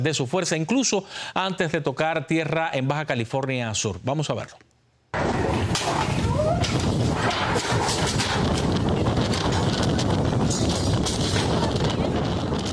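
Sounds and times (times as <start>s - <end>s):
speech: 0.0s - 4.7s
Hurricane Polo wind gusts lashing a department store in La Paz, Baja California Sur: 5.2s - 12.7s
scattered sharp knocks and clatters: 5.2s - 12.7s.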